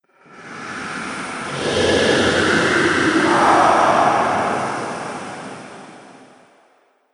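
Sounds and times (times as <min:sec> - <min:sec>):
ghost sound effects: 0:01.2 - 0:06.5.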